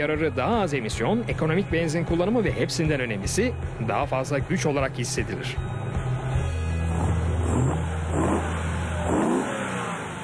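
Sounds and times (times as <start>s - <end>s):
speech: 0.0s - 5.8s
Lamborghini engine revving: 6.6s - 10.2s.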